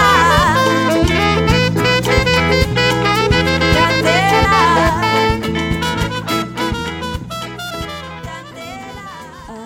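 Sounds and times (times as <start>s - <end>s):
person singing: 0.0s - 1.5s, 3.5s - 5.8s, 8.0s - 9.6s
bass: 0.0s - 9.6s
drums: 0.0s - 9.6s
trumpet: 0.0s - 9.6s
two guitars: 0.0s - 9.6s.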